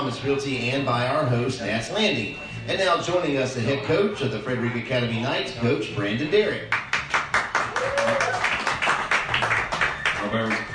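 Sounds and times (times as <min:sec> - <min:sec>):
speech: 0:00.0 - 0:06.8
audience clapping in rhythm: 0:06.7 - 0:10.7.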